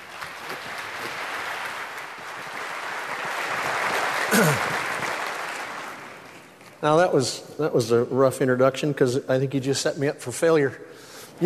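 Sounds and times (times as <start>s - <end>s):
audience applause welcoming a pastor: 0.0s - 6.6s
speech: 4.4s - 4.7s, 6.8s - 11.4s.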